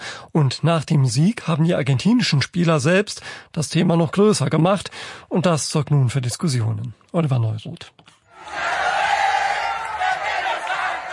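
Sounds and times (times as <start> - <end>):
speech: 0.4 - 8.7
Argentine football fans cheering after final whistle: 8.4 - 11.1.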